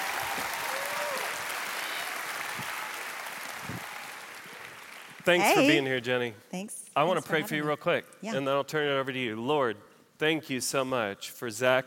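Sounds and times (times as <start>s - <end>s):
audience applause welcoming a speaker at an evening event for young adults: 0.0s - 5.9s
speech: 5.3s - 11.8s.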